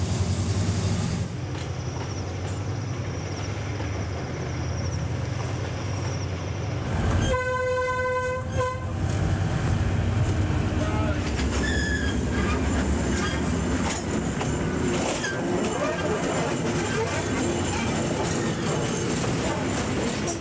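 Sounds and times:
mountain train moving: 0.0 - 20.3
mountain train whistling: 7.2 - 8.9.

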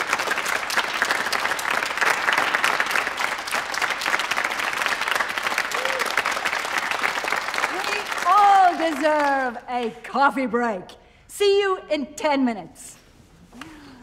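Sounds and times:
group applause: 0.0 - 9.7
speech: 9.0 - 13.0.

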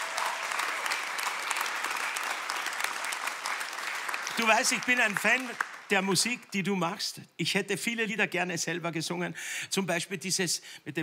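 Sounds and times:
audience applause: 0.0 - 6.0
speech: 4.4 - 11.0.

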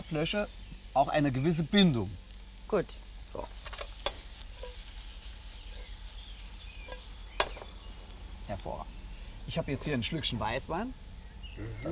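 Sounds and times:
flour roasting and sizzling in a pan: 0.0 - 11.9
speech: 0.1 - 3.6, 8.5 - 11.9
scrapes and clicks of stirring in a pan: 3.8 - 5.0, 5.6 - 6.0, 6.7 - 7.7.

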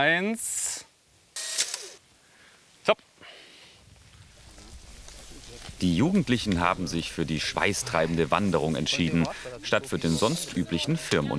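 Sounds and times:
speech: 0.0 - 0.8, 2.9 - 3.1, 5.8 - 11.3
camera shutter click taking a group photo on a hiking trail: 1.4 - 2.0
rustling: 3.6 - 10.5.

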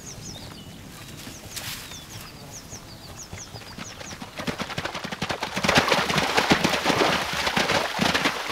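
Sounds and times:
birds chirping: 0.0 - 5.4
hooves of several wild horses thudding and clattering: 0.3 - 8.4.

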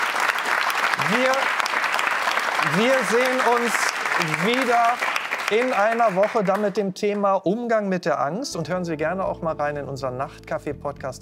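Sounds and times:
studio audience applause: 0.0 - 6.8
speech: 1.0 - 1.6, 2.6 - 11.2.

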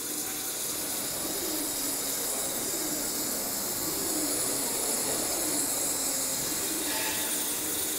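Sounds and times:
abrasive water and quartz sand jet cutting through material: 0.0 - 7.9.

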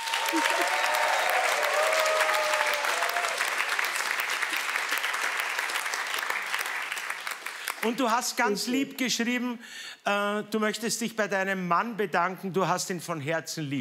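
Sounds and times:
hearty applause from a crowd: 0.0 - 7.9
speech: 0.3 - 0.9, 7.8 - 13.7.

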